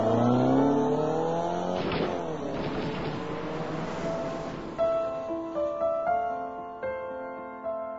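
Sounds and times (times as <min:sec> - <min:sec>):
car engine revving and accelerating hard: 0:00.0 - 0:06.1
loud rushing burst of noise: 0:00.0 - 0:06.1.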